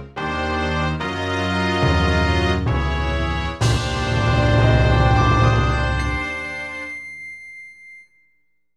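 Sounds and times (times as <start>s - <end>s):
boss clear fanfare: 0.3s - 7.1s.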